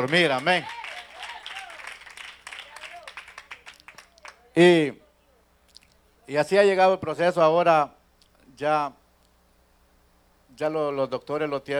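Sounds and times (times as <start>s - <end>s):
speech: 0.0s - 0.8s, 4.6s - 5.0s, 6.3s - 8.0s, 8.6s - 9.0s, 10.6s - 11.7s
strong applause from audience: 0.0s - 4.5s.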